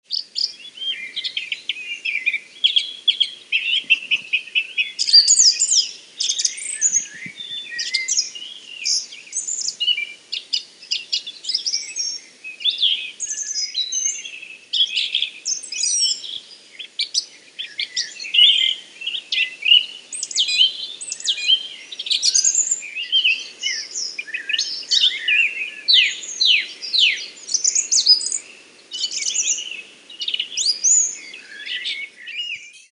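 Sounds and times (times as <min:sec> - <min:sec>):
birds: 0:00.0 - 0:32.9.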